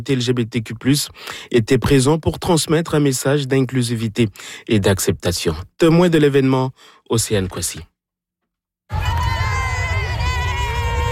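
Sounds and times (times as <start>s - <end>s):
speech: 0.0s - 7.9s
crowd at a pride parade in the streets of Winnipeg: 8.9s - 11.1s.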